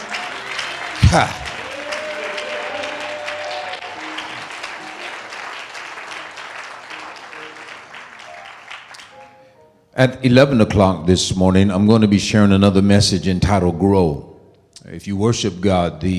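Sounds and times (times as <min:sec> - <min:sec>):
audience clapping hands: 0:00.0 - 0:09.4
speech: 0:01.1 - 0:01.4, 0:10.0 - 0:14.3, 0:14.9 - 0:16.1.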